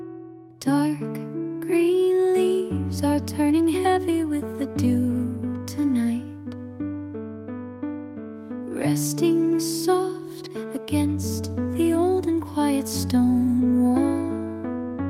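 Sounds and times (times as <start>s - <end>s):
lullaby singing: 0.5s - 6.7s, 8.7s - 15.0s.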